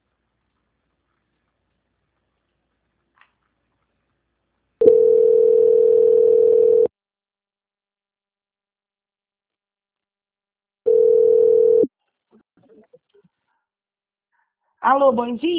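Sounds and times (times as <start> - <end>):
telephone line tones during a bank call transfer: 4.8 - 6.9, 10.9 - 11.9
speech: 14.8 - 15.5.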